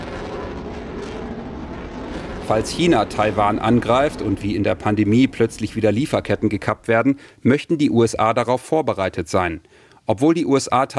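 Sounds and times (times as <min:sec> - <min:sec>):
fighter jets roaring overhead: 0:00.0 - 0:06.9
speech: 0:02.5 - 0:10.9.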